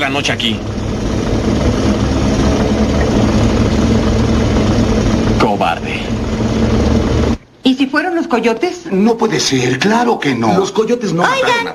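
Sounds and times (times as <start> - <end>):
speech: 0.0 - 0.8, 5.4 - 6.2, 7.7 - 11.7
car engine running: 0.0 - 7.4.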